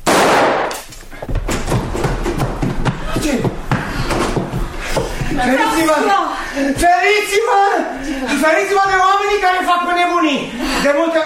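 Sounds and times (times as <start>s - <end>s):
revolver gunshot: 0.0s - 0.9s
faint knocks and thumps: 1.2s - 5.5s
speech: 5.4s - 11.2s.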